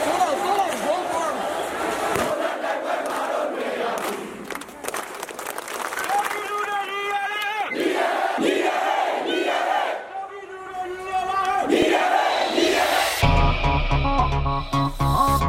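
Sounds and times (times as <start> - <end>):
large protest crowds chanting and shouting in unison in Burmese city squares: 0.0 - 4.9, 6.8 - 15.3
protest crowd cheering: 0.0 - 13.5.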